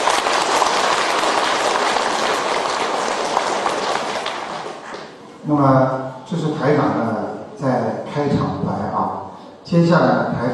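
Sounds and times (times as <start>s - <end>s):
crowd applause: 0.0s - 5.2s
speech: 5.5s - 8.8s, 9.7s - 10.5s.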